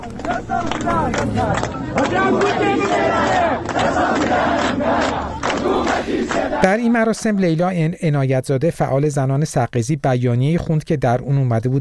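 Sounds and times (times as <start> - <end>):
large crowd chanting protest slogans in unison at a memorial ceremony: 0.0 - 7.0
speech: 0.3 - 5.3, 6.0 - 11.7.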